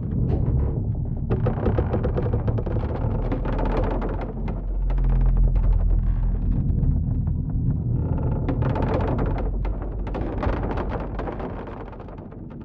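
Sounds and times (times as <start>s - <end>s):
dock creaking: 0.0s - 12.6s.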